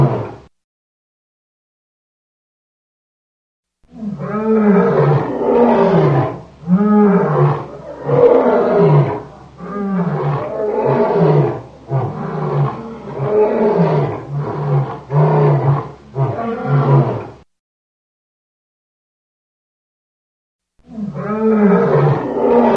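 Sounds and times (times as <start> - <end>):
lion roaring: 0.0 - 0.4, 3.9 - 17.4, 20.9 - 22.7.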